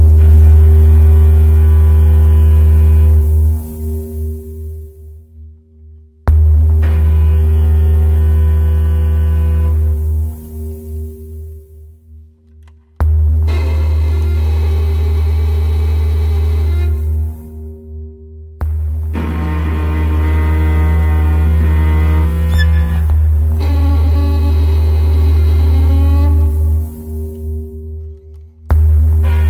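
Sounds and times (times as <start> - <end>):
crushed string quartet fragment: 0.1 - 3.8, 6.7 - 10.5, 13.3 - 17.6, 19.0 - 27.6, 28.9 - 29.4.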